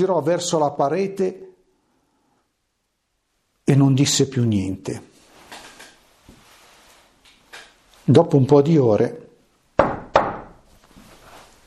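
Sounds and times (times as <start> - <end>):
speech: 0.0 - 1.5, 3.7 - 5.1, 8.1 - 9.2
servants knocking on a door: 9.8 - 10.6.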